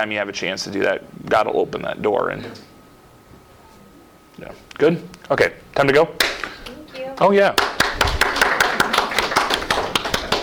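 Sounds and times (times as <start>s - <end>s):
speech: 0.0s - 2.7s, 4.4s - 6.3s, 7.2s - 8.1s
polite golf clap applause: 7.6s - 10.4s.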